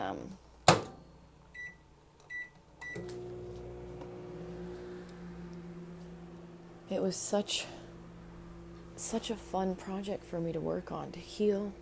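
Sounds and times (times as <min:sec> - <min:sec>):
small microwave oven button beeps: 0:01.6 - 0:03.2
small microwave oven warming a cup of coffee: 0:01.6 - 0:11.8
speech: 0:06.9 - 0:07.8, 0:09.0 - 0:11.8.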